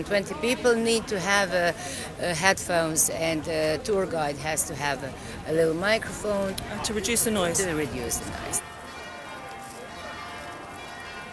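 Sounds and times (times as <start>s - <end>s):
speech: 0.0s - 8.7s
church bells ringing: 6.8s - 11.3s.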